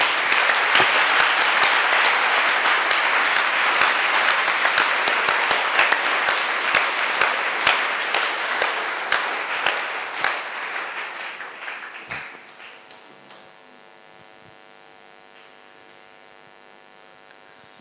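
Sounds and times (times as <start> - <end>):
church congregation applause clapping for the Lord: 0.0 - 13.7.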